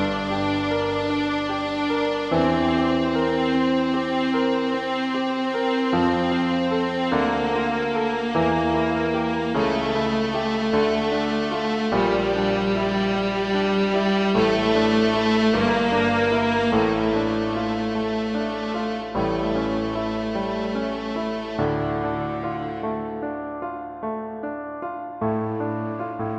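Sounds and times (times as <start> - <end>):
cello: 0.0 - 23.8
piano: 0.0 - 26.3.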